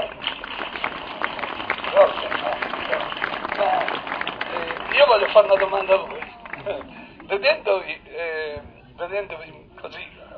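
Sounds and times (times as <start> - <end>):
audience applause: 0.0 - 7.4
speech: 5.2 - 10.0.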